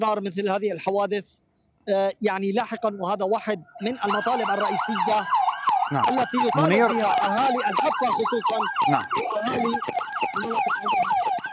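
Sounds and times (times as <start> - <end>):
speech: 0.0 - 11.3
police car siren: 3.6 - 11.5.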